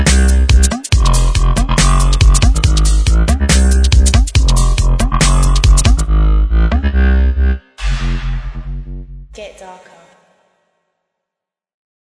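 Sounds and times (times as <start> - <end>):
dubplate basslines: 0.0 - 9.3.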